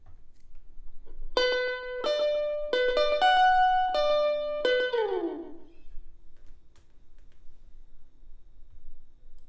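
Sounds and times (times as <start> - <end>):
electric guitar: 1.4 - 5.9.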